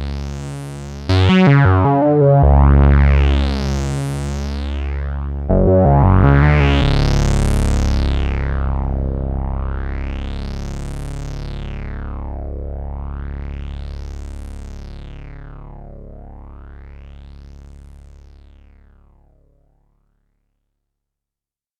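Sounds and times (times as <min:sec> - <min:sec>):
MS20 synthesizer played live: 0:00.0 - 0:14.2.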